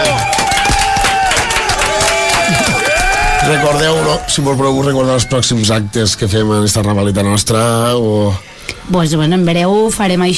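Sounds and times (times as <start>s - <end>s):
audience applause: 0.0s - 4.3s
speech: 3.5s - 10.3s.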